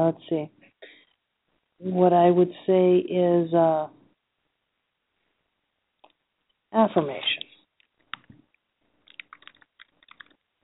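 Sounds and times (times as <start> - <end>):
speech: 0.0 - 0.6, 1.8 - 4.0, 6.7 - 7.4
typing on a computer keyboard: 9.0 - 10.4.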